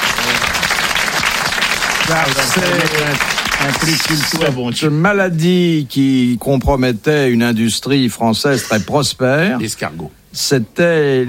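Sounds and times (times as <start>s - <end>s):
crowd applauding: 0.0s - 4.6s
speech: 2.1s - 11.2s
man calling out: 8.5s - 9.8s.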